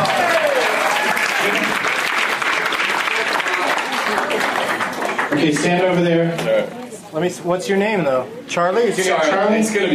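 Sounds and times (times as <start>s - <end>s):
audience clapping: 0.0s - 5.9s
speech: 5.4s - 9.9s.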